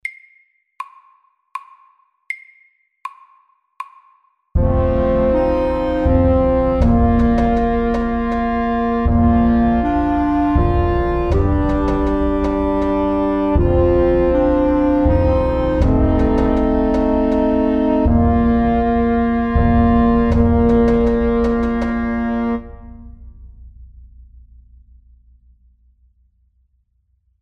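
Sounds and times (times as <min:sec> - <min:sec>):
viking dance music: 0:04.6 - 0:22.5.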